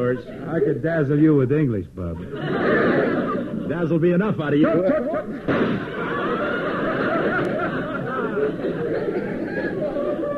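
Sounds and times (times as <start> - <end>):
speech: 0.0 - 6.2
crowd murmuring, chatter and chuckling: 2.0 - 10.3
gunshot fired from the audience: 5.4 - 6.0.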